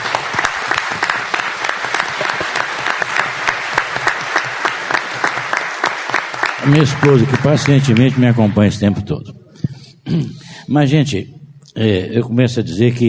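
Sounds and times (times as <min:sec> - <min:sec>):
audience applause: 0:00.0 - 0:08.7
speech: 0:06.6 - 0:09.4, 0:10.1 - 0:13.0.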